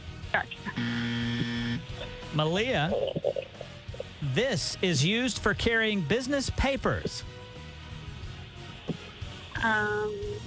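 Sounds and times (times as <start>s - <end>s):
speech: 0.4s - 1.5s, 2.3s - 3.4s, 4.2s - 7.4s, 9.6s - 10.4s
game show buzzer: 0.7s - 2.0s.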